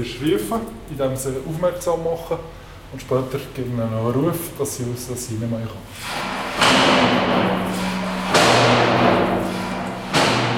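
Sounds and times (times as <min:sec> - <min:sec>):
speech: 0:00.0 - 0:07.8
sliding hatch of lion enclosure opened and closed: 0:06.0 - 0:10.5.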